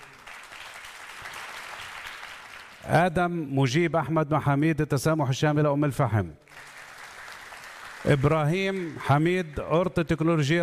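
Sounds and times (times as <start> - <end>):
audience applause welcoming student ambassadors: 0.0 - 2.8, 6.5 - 9.6
speech: 2.8 - 6.4, 8.0 - 10.6.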